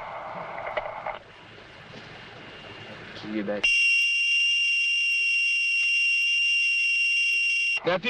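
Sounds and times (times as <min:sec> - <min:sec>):
speech: 0:03.2 - 0:03.8, 0:07.8 - 0:08.0
walkie-talkie whistle tone: 0:03.6 - 0:07.8.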